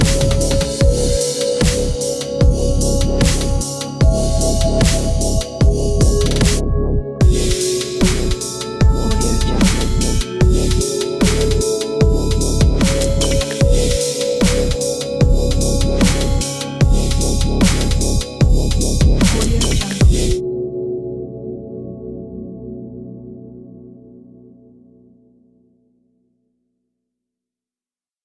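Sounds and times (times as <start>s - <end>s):
ambient dubstep music: 0.0s - 20.7s.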